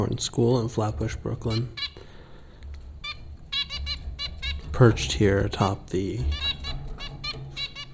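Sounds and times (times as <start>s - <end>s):
speech: 0.0s - 1.8s, 4.8s - 6.5s
zebra finch nasal calls: 1.5s - 2.0s, 3.0s - 5.2s, 6.2s - 7.9s.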